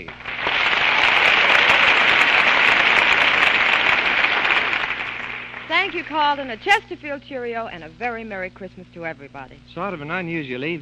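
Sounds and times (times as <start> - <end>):
studio audience applause: 0.0 - 6.8
speech: 5.8 - 10.7.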